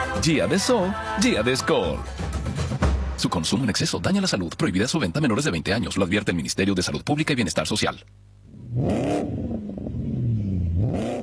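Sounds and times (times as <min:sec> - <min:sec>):
speech: 0:00.2 - 0:02.2, 0:03.2 - 0:09.4
Changan car engine revving: 0:08.5 - 0:11.2.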